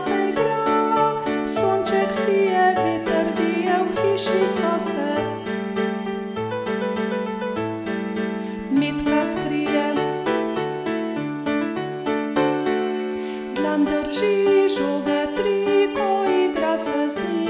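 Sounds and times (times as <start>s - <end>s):
person singing: 0.0s - 5.7s, 8.4s - 10.6s, 13.1s - 17.4s
piano: 0.0s - 17.4s.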